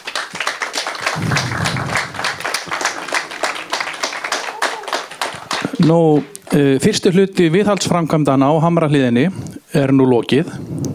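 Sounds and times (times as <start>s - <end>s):
applause from a gathering: 0.0s - 6.7s
speech: 5.8s - 10.8s.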